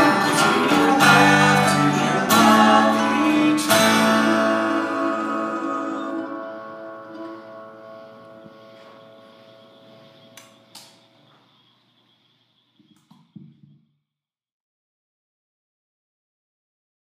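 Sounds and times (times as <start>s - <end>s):
audience: 0.0s - 7.6s.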